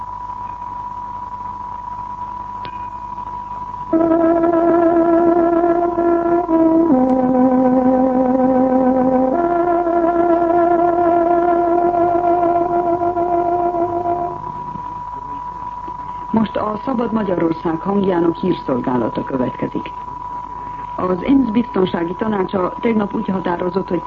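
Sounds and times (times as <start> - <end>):
speech: 3.9 - 4.2, 17.1 - 20.0, 21.0 - 24.0
tárogató playing the hourly time signal: 3.9 - 14.8.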